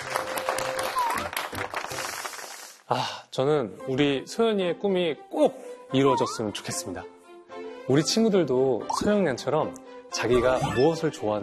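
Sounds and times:
applause: 0.0 - 2.9
speech: 2.9 - 7.2, 7.9 - 11.4.

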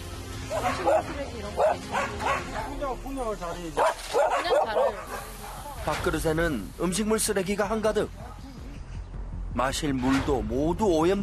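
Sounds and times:
dogs barking: 0.4 - 2.9, 3.8 - 5.8
speech: 0.5 - 8.2, 9.6 - 11.2.

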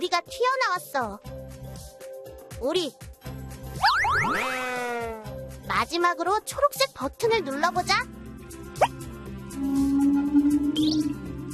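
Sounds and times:
speech: 0.0 - 1.4, 2.6 - 8.2, 9.6 - 11.2
humpback whale call: 9.5 - 11.3.

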